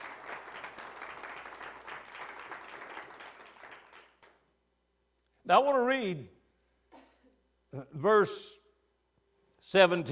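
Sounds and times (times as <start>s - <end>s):
audience clapping: 0.0s - 4.5s
speech: 5.5s - 6.4s, 7.7s - 8.6s, 9.7s - 10.1s.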